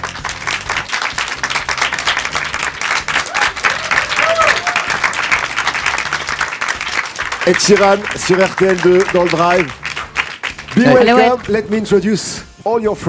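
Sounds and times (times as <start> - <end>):
studio audience applause: 0.0 - 11.6
studio audience cheers and whoops: 3.1 - 5.2
speech: 7.4 - 9.8, 10.8 - 13.0.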